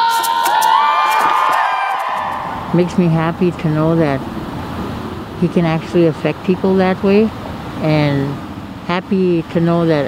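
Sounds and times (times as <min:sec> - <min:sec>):
rally crowd cheering: 0:00.0 - 0:03.9
speech: 0:02.8 - 0:04.4, 0:05.4 - 0:10.0.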